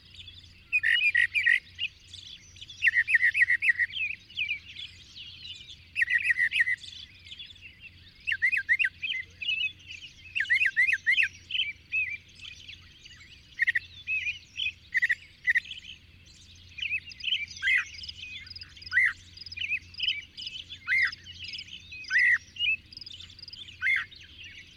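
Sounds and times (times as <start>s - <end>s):
bird singing: 0.0s - 24.7s.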